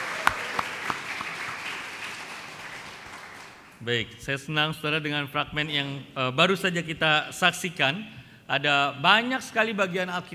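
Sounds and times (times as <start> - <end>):
church congregation applause marking the 33rd anniversary of a congregation: 0.0 - 3.8
speech: 3.8 - 10.3.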